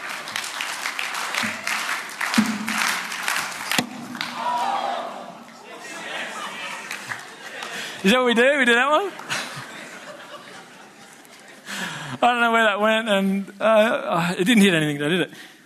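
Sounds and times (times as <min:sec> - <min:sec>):
audience clapping someone in cricket style: 0:00.0 - 0:05.6, 0:06.7 - 0:08.3, 0:09.0 - 0:09.6
laughter: 0:05.5 - 0:08.3, 0:09.0 - 0:12.2
speech: 0:08.0 - 0:09.2, 0:12.2 - 0:15.5.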